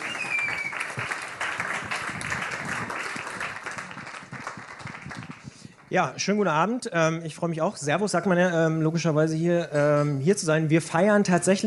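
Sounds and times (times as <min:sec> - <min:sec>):
audience applause at a reporter slam birthday event: 0:00.0 - 0:05.6
speech: 0:05.9 - 0:11.6.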